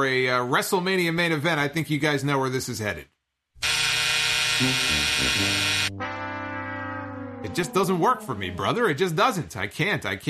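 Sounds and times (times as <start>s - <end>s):
speech: 0.0s - 3.2s, 4.6s - 6.0s, 7.6s - 10.2s
electronic buzzer: 3.6s - 7.8s.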